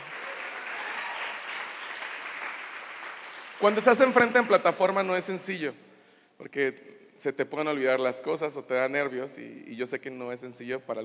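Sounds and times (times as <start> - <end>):
crowd applause: 0.0 - 4.6
speech: 3.6 - 11.0.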